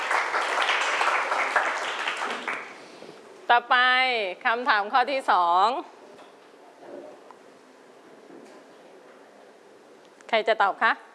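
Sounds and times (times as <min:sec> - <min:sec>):
classroom clapping for a classmate: 0:00.0 - 0:03.0
speech: 0:03.5 - 0:06.0, 0:10.3 - 0:11.1.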